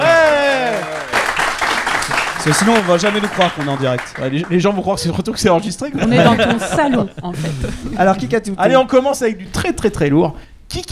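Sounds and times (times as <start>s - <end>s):
applause at the Bistrot Malherbe: 0.0s - 4.7s
speech: 2.4s - 10.8s
laughter: 5.0s - 8.3s.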